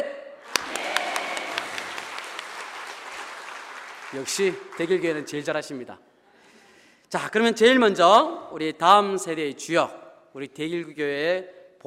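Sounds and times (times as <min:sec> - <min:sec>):
audience applauding: 0:00.4 - 0:05.5
speech: 0:04.1 - 0:06.1, 0:07.1 - 0:11.8.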